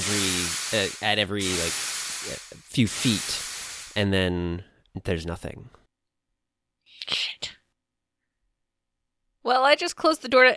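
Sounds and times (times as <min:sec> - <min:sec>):
steam blasting out of a vent in a video game: 0:00.0 - 0:04.0
speech: 0:00.1 - 0:03.4, 0:04.0 - 0:05.8, 0:09.4 - 0:10.5.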